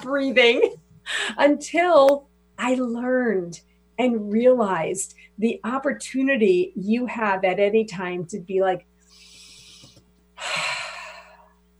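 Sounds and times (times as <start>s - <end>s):
speech: 0.0s - 8.9s
shallow breath taken as a demonstration: 9.1s - 11.6s.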